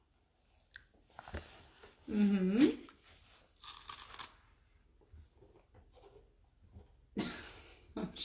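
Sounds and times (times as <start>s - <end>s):
speech: 2.1s - 2.8s
child eating cheese puffs: 2.9s - 4.5s.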